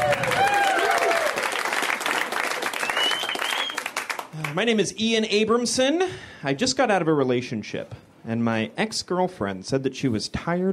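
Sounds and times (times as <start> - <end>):
audience clapping as a comedian is welcomed to the stage: 0.0 - 4.8
speech: 4.6 - 10.7.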